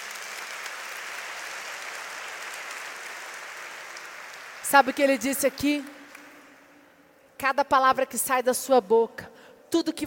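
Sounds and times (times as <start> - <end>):
audience applause: 0.0 - 5.3
speech: 4.7 - 6.0, 7.4 - 10.0.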